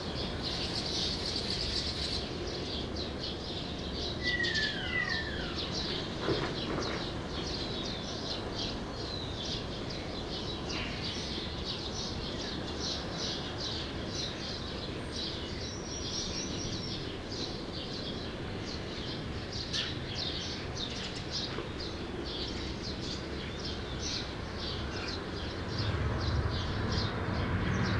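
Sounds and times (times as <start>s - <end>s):
sparrow flock chirping: 0.1s - 27.9s.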